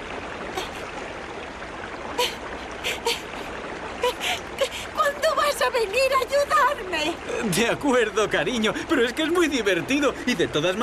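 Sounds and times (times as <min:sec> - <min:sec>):
flowing stream water: 0:00.0 - 0:10.8
speech: 0:07.0 - 0:10.8.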